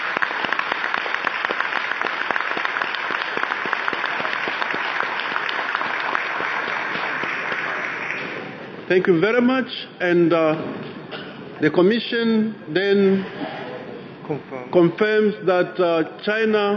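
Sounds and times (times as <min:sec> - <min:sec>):
audience applause: 0:00.0 - 0:08.7
speech: 0:08.9 - 0:11.0, 0:11.6 - 0:13.4, 0:14.3 - 0:16.7.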